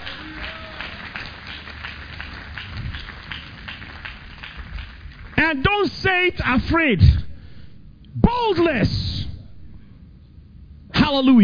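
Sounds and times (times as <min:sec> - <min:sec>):
audience clapping: 0:00.0 - 0:05.7
speech: 0:05.4 - 0:07.2, 0:08.2 - 0:09.0, 0:11.1 - 0:11.4.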